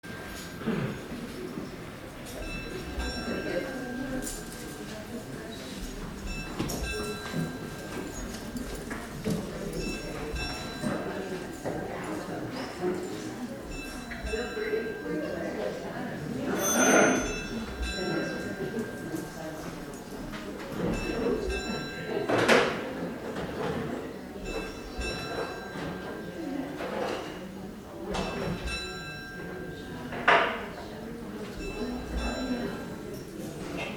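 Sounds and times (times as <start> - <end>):
church bell ringing before Mass: 0.0 - 33.9.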